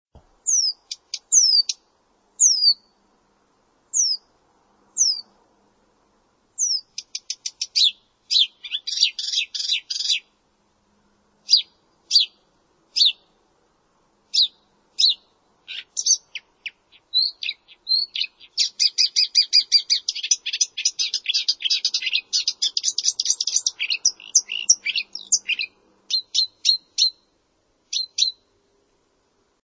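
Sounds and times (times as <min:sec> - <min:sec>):
bird chirping: 0:00.4 - 0:03.0, 0:03.9 - 0:04.3, 0:05.0 - 0:05.4, 0:06.6 - 0:10.4, 0:11.4 - 0:13.4, 0:14.3 - 0:28.6.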